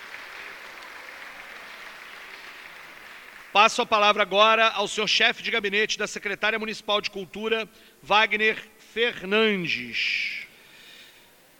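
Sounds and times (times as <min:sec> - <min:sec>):
audience applause: 0:00.0 - 0:03.8
speech: 0:03.6 - 0:10.4.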